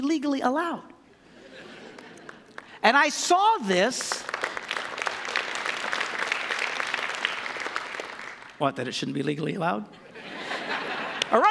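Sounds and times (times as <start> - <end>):
speech: 0.0 - 0.9, 2.8 - 4.3, 8.6 - 10.0
laughter: 1.2 - 2.6, 9.9 - 11.4
audience clapping: 1.7 - 8.9, 11.1 - 11.4.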